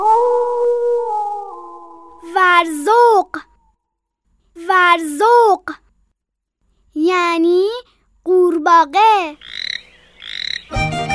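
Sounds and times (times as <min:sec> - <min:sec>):
wolf howling: 0:00.0 - 0:02.2
speech: 0:02.4 - 0:03.5, 0:04.6 - 0:05.8, 0:07.0 - 0:09.6.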